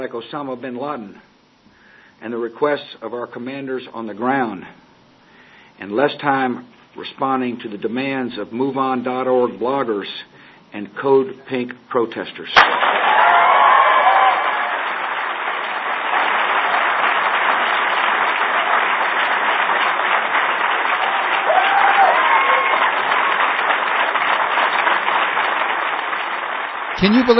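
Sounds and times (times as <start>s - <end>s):
speech: 0.0s - 1.3s, 2.2s - 4.8s, 5.8s - 13.0s, 27.0s - 27.3s
audience applause: 12.6s - 27.3s.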